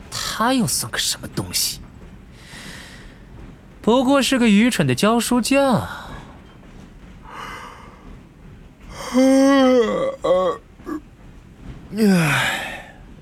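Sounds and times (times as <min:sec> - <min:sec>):
speech: 0:00.4 - 0:01.8, 0:03.9 - 0:06.1, 0:09.2 - 0:10.6, 0:11.9 - 0:12.7
person acting out an exaggerated yawn: 0:09.0 - 0:11.0, 0:12.0 - 0:12.9.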